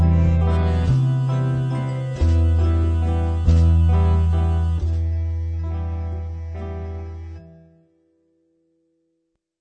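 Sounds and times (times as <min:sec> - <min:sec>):
French chanson song: 0:00.0 - 0:07.6.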